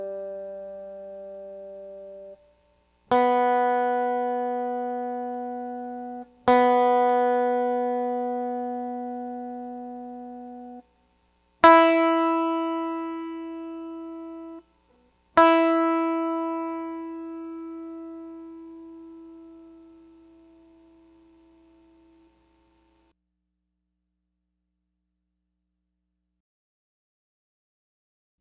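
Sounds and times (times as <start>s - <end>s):
six-string guitar string notes in standard tuning: 0.0s - 2.4s, 3.1s - 10.8s, 11.6s - 22.3s.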